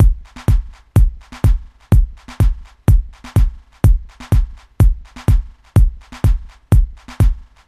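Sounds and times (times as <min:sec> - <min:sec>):
ambient house mixed beat at 125 BPM: 0:00.0 - 0:07.6.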